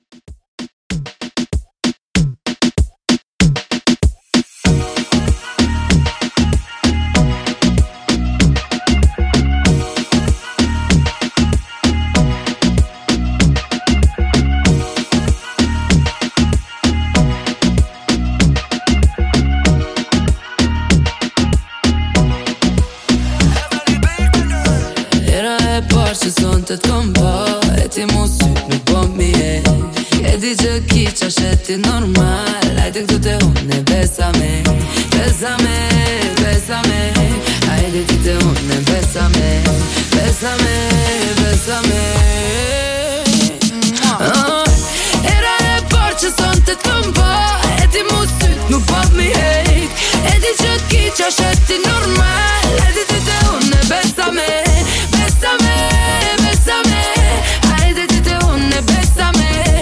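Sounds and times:
moombahton music at 96 BPM: 0.0s - 59.8s.

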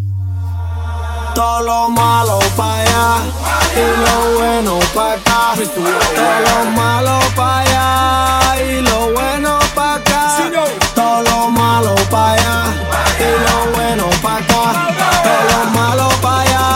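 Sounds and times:
transition sound effect: 0.1s - 10.8s, 11.5s - 16.7s.

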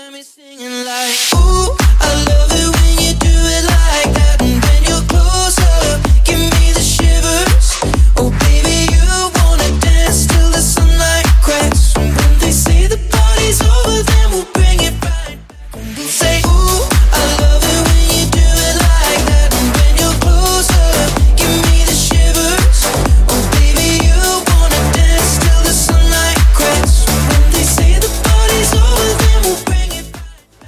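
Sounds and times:
bass house music at 127 bpm: 1.2s - 30.6s.

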